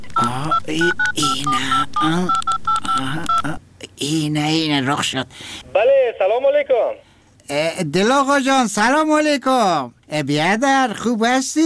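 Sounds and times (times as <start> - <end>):
telephone number being dialed: 0.1 - 3.6
speech: 0.2 - 11.6.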